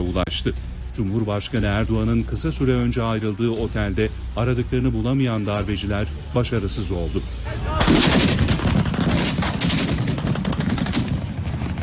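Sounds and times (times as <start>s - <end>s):
speech: 0.2s - 8.3s
gunfire: 7.8s - 11.8s.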